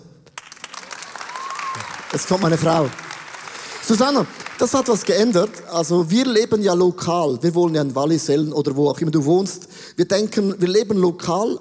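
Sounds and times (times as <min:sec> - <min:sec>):
audience applause: 0:00.4 - 0:05.6
speech: 0:02.1 - 0:03.0, 0:03.9 - 0:11.6.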